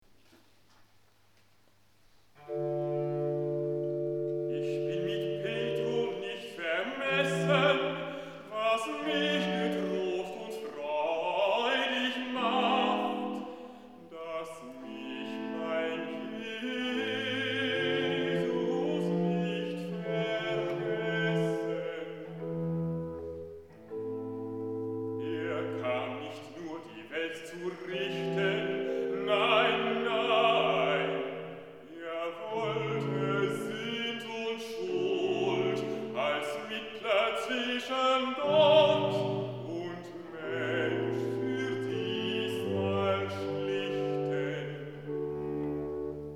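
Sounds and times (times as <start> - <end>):
recitative: 0.0 - 46.3.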